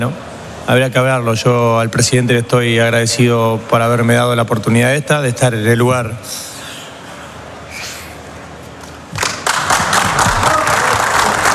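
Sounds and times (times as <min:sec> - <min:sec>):
speech: 0:00.0 - 0:06.5
applause in a press room: 0:09.1 - 0:11.5.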